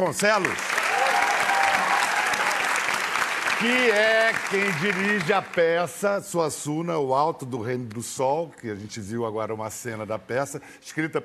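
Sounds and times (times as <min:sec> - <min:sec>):
speech: 0:00.0 - 0:00.7, 0:03.6 - 0:11.2
audience applause: 0:00.3 - 0:05.8.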